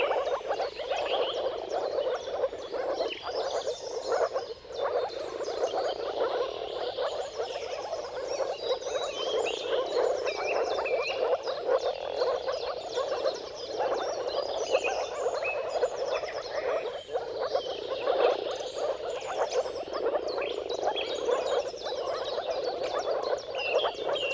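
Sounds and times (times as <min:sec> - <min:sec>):
moor frogs giving muffled bubbling calls in chorus: 0:00.0 - 0:24.3.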